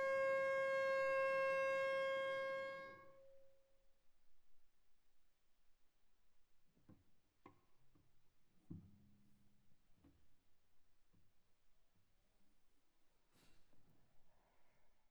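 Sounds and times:
viola arco on the D string: 0:00.0 - 0:03.4.

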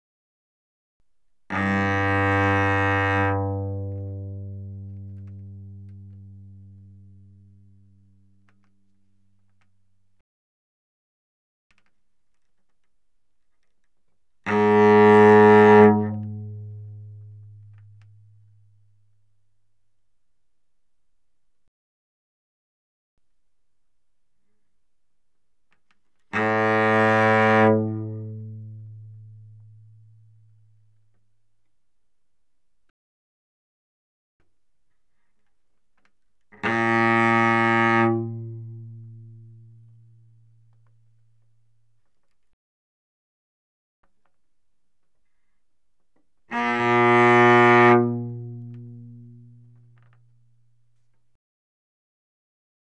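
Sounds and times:
cello bowed fortissimo on the G string: 0:01.5 - 0:08.3, 0:14.5 - 0:18.9, 0:26.4 - 0:30.9, 0:36.6 - 0:40.8, 0:46.5 - 0:50.7.

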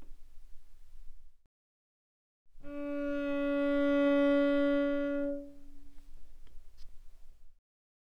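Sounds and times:
cello bowed arco mezzo forte on the D string: 0:02.6 - 0:06.0.

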